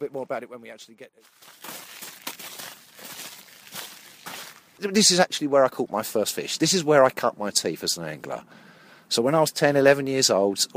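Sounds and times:
speech: 0.0 - 1.9, 4.8 - 10.7
footsteps walking up to Bunchley's Pond: 1.2 - 5.2.

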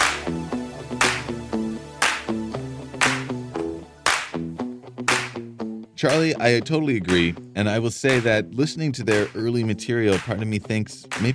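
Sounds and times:
lone person slowly clapping: 0.0 - 1.4, 2.0 - 3.4, 4.1 - 5.5, 7.1 - 7.4, 8.1 - 8.4, 9.1 - 10.4, 11.1 - 11.3
plucky tuneful music: 0.0 - 11.3
speech: 6.0 - 11.3.

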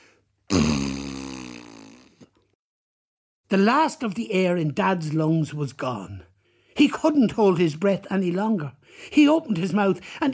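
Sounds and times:
loud trumpeting fart: 0.5 - 2.2
speech: 3.5 - 10.3.

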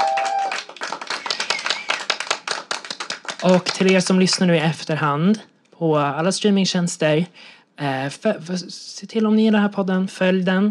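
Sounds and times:
audience applause: 0.0 - 4.1
speech: 3.4 - 10.6.

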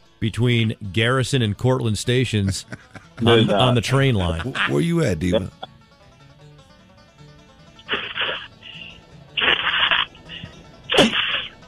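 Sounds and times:
speech: 0.2 - 5.7
laughter: 2.2 - 5.7
person blowing nose: 7.9 - 11.5.

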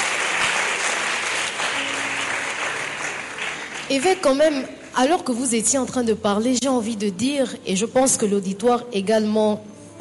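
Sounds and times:
audience applause for a bishop: 0.0 - 4.4
speech: 3.9 - 9.9.

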